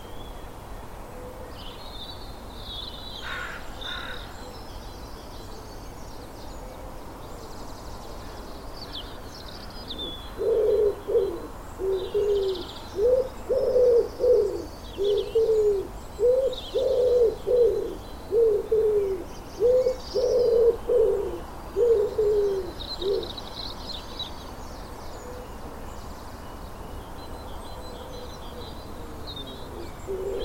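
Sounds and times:
low repeated cooing of birds in a garden: 9.9 - 23.4, 27.8 - 30.4.

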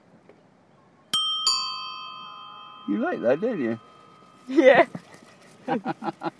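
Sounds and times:
doorbell ding-dong chime: 1.2 - 4.3
speech: 2.9 - 3.9, 4.5 - 5.0, 5.6 - 6.3
laughter: 5.6 - 6.3.

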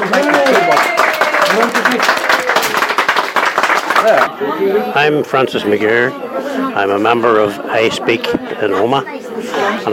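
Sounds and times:
audience round of applause: 0.0 - 4.3
speech: 4.1 - 9.9.

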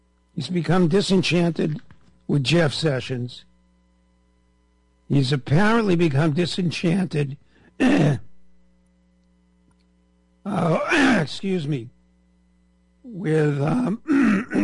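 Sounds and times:
speech: 0.4 - 3.5, 5.1 - 8.3, 10.4 - 12.0, 13.0 - 14.6
man clearing throat: 7.8 - 8.3, 10.6 - 11.3, 13.7 - 14.6.

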